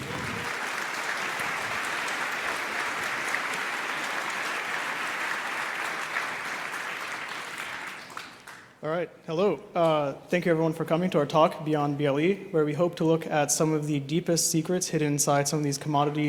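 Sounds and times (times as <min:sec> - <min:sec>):
audience applause: 0:00.0 - 0:08.8
speech: 0:08.8 - 0:16.2.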